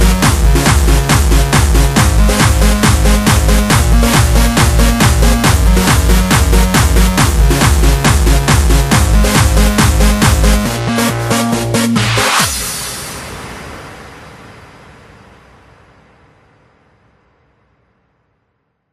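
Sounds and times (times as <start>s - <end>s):
techno remix: 0.0s - 13.1s.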